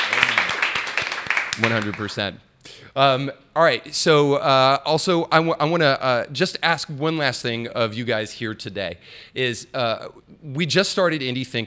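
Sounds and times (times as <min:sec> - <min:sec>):
round of applause: 0:00.0 - 0:02.2
speech: 0:01.6 - 0:11.6.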